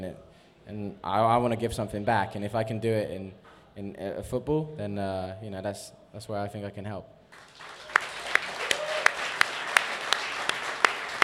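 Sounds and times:
soft hiss: 0.0 - 7.4
speech: 0.0 - 7.7
hand claps: 7.3 - 11.2.

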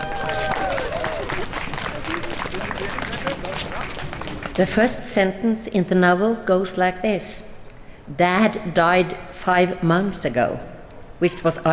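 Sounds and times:
audience clapping to welcome an author: 0.0 - 4.9
crowd voices: 0.0 - 5.0
speech: 4.6 - 7.5, 8.1 - 11.7.

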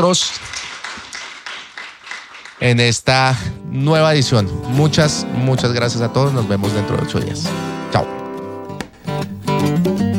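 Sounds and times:
speech: 0.0 - 0.6, 2.6 - 8.2
audience applause: 0.0 - 3.0.

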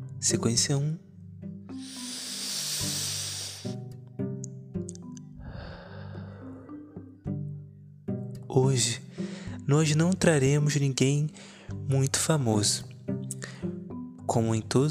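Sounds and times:
speech: 0.2 - 1.1, 8.7 - 9.0, 9.7 - 12.9, 14.3 - 14.8
slow deep breathing exercise: 1.8 - 3.8, 5.2 - 7.2, 11.4 - 11.8.

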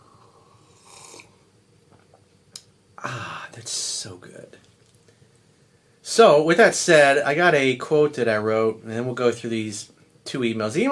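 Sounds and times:
person sipping water: 0.2 - 1.4
speech: 3.0 - 4.7, 6.1 - 10.8.

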